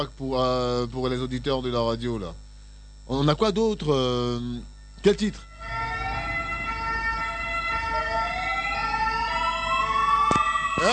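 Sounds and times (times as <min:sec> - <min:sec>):
speech: 0:00.0 - 0:02.4, 0:03.1 - 0:05.5
ambulance siren sound effect: 0:05.4 - 0:10.9.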